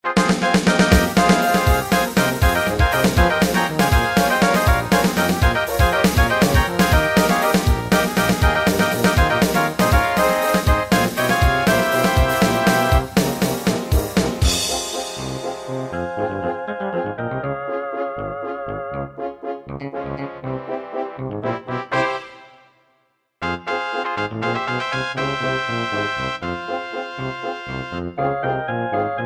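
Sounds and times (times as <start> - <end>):
MIDI music: 0.0 - 22.8, 23.4 - 29.2.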